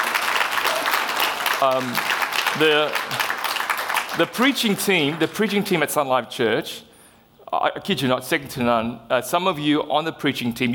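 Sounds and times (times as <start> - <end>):
church audience at Sun Life Church clapping for the preacher: 0.0 - 5.9
speech: 1.6 - 3.3, 4.1 - 6.9, 7.5 - 10.7.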